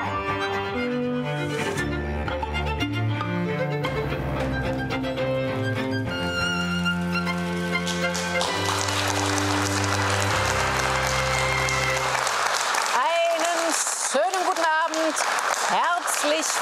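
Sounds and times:
sustained music notes: 0.0s - 12.3s
live audience applause: 7.2s - 16.6s.

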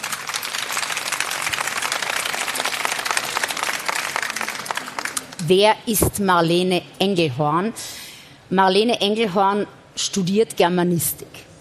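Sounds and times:
audience applause: 0.0s - 5.4s
speech: 5.5s - 11.5s.

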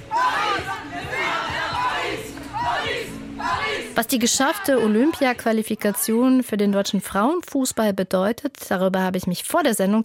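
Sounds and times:
fans shouting: 0.0s - 6.3s
football fans chanting and singing: 0.0s - 7.2s
speech: 4.0s - 10.0s.

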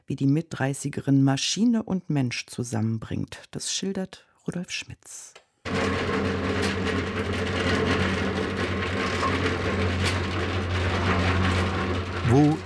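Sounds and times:
speech: 0.1s - 8.1s, 12.3s - 12.6s
six concrete mixers grinding: 5.7s - 12.6s.

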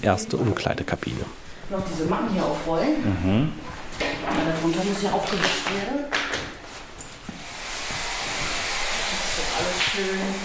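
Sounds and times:
speech: 0.0s - 6.2s, 9.6s - 10.4s
small spray bottle spraying shower room walls and toilets: 7.3s - 10.4s.

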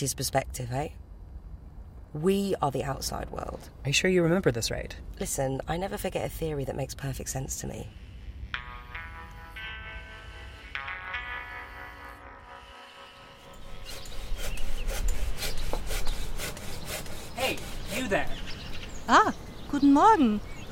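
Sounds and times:
speech: 0.0s - 1.0s, 2.1s - 8.0s, 20.0s - 20.5s
faint tonal sounds: 6.6s - 14.4s
hand saw cutting through wood: 13.4s - 18.3s.

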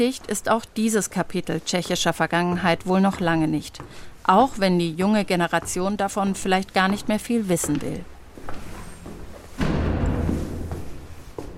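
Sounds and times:
speech: 0.0s - 8.7s
heavy door opening with clunk and grinding rumble: 8.6s - 11.2s.

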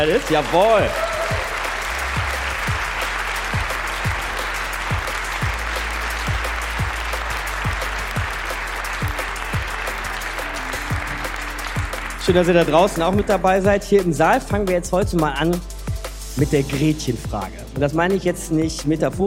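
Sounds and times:
speech: 0.0s - 1.1s, 12.2s - 15.7s, 16.4s - 19.2s
audience applause in hall: 0.0s - 13.4s.

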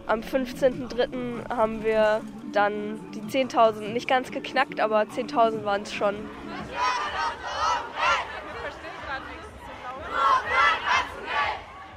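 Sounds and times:
speech: 0.1s - 6.9s
large crowd of protesting students shouting and chanting: 5.5s - 11.9s.

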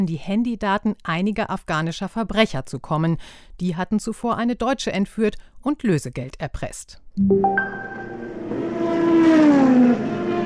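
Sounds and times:
speech: 0.0s - 8.3s
racing car engine revving with a high whining tone: 8.4s - 10.4s.

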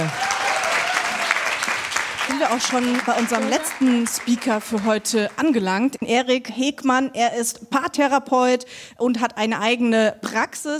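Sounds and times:
audience applause: 0.0s - 5.6s
speech: 2.4s - 10.7s.

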